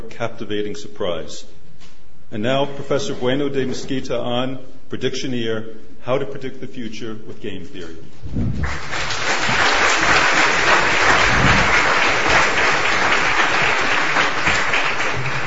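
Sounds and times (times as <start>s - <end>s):
speech: 0.1s - 9.3s
audience applause: 8.6s - 15.4s.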